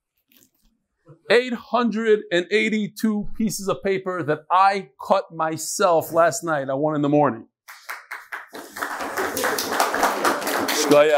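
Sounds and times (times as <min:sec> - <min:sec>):
speech: 0:01.3 - 0:07.8, 0:10.9 - 0:11.1
audience clapping: 0:07.7 - 0:11.1.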